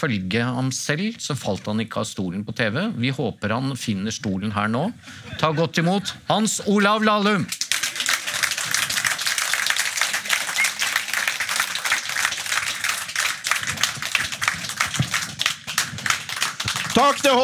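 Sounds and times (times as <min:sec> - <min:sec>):
speech: 0:00.0 - 0:08.0, 0:17.0 - 0:17.4
audience applause: 0:07.5 - 0:17.4.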